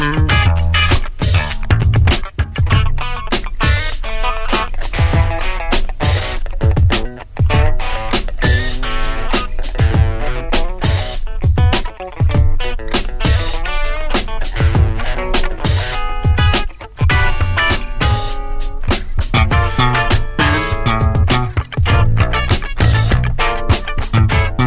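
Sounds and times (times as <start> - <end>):
retro music jam: 0.0 - 24.6.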